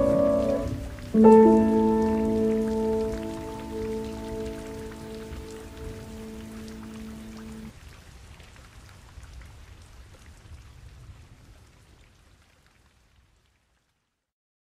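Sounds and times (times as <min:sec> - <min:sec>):
piano improvisation: 0:00.0 - 0:07.7.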